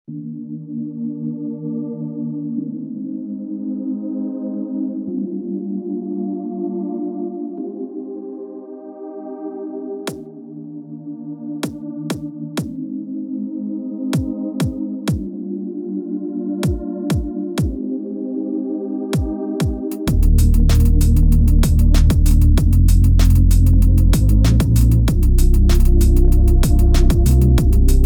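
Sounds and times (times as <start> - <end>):
hip hop music: 14.2 - 15.3, 16.6 - 17.9, 19.2 - 28.0.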